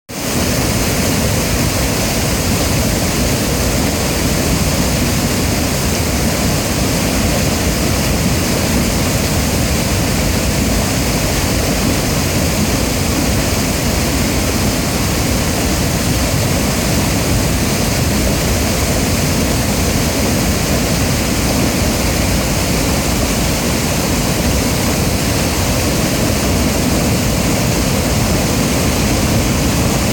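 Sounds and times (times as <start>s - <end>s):
water roaring over the Lech weir: 0.1s - 30.1s.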